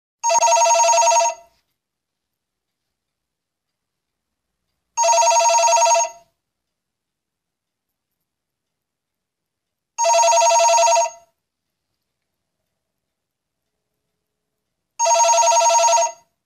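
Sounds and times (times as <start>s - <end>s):
telephone ringing: 0.2s - 1.6s, 5.0s - 6.3s, 10.0s - 11.4s, 15.0s - 16.3s.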